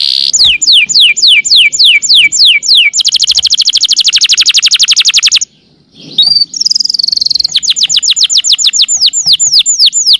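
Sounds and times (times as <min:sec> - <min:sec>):
bird song with high whistled notes and rapid descending trill: 0:00.0 - 0:10.1.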